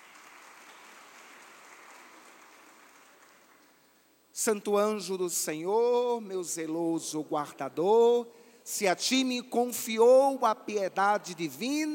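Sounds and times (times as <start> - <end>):
audience applauding: 0.0 - 3.9
speech: 4.4 - 11.9.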